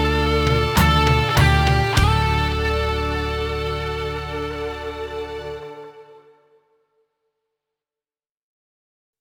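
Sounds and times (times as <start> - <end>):
solo guitar: 0.0 - 6.2.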